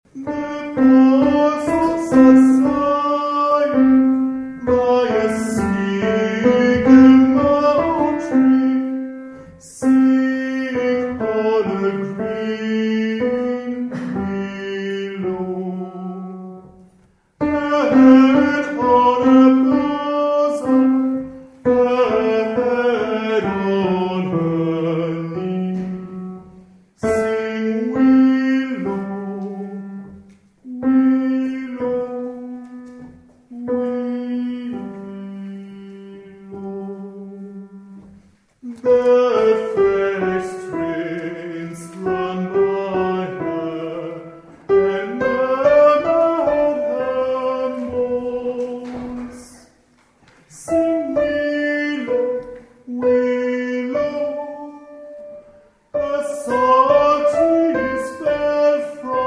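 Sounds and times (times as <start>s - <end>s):
tenor voices singing: 0.0s - 16.7s, 17.4s - 49.8s, 50.5s - 59.2s.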